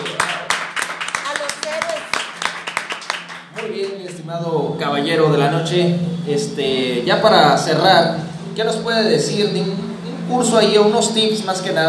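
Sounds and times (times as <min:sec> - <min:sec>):
few people clapping: 0:00.0 - 0:04.2
speech: 0:04.3 - 0:11.8.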